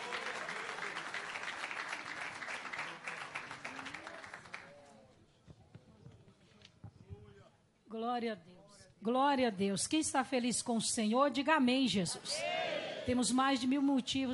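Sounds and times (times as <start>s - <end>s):
audience applauding: 0.0s - 4.8s
speech: 8.0s - 14.3s.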